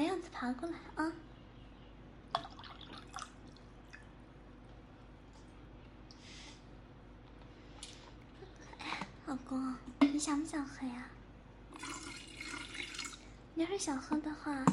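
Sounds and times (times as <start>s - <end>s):
speech: 0.4s - 1.4s, 9.5s - 11.2s, 13.6s - 14.7s
water being poured into a cup: 2.4s - 4.1s, 11.7s - 13.3s.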